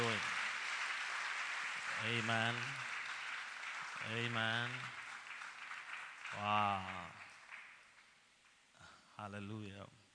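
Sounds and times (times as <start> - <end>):
audience clapping: 0.0 - 8.6
speech: 2.0 - 2.8, 4.0 - 5.0, 6.3 - 7.2, 9.2 - 9.9.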